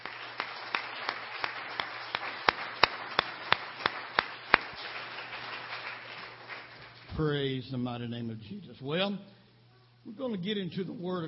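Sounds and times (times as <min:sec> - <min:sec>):
audience hand clapping: 0:00.0 - 0:07.2
speech: 0:07.2 - 0:09.4, 0:10.0 - 0:11.2.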